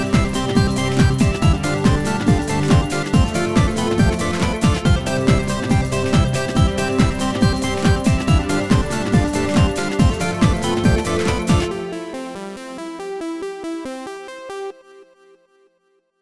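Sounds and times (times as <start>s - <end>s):
kick drum taps: 0.0s - 11.7s.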